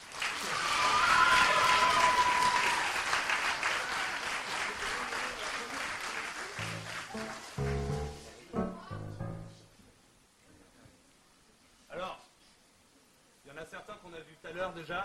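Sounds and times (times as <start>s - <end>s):
audience clapping: 0.0s - 8.8s
speech: 14.8s - 15.0s.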